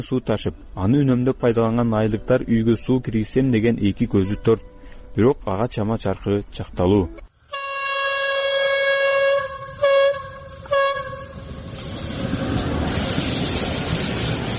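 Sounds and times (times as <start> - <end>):
speech: 0.0 - 7.3
train horn blaring in a village: 7.5 - 11.9
rumble of the passing train: 7.5 - 14.5.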